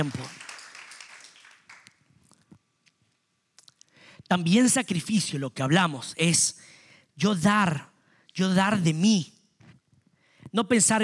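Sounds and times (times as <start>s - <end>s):
speech: 0.0s - 0.4s, 4.3s - 9.4s, 10.5s - 11.0s
audience applause: 0.0s - 2.0s.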